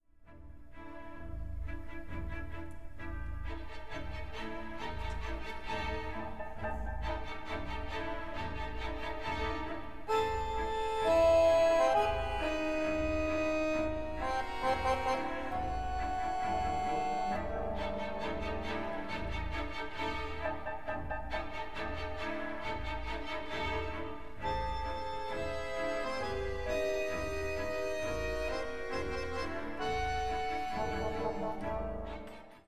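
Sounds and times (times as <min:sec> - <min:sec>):
accordion: 0:01.0 - 0:32.6.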